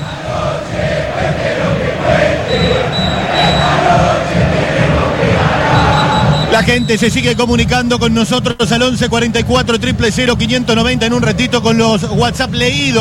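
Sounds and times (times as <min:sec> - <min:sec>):
football stadium crowd at La Bombonera before the match: 0:00.0 - 0:12.9
speech: 0:06.6 - 0:12.9.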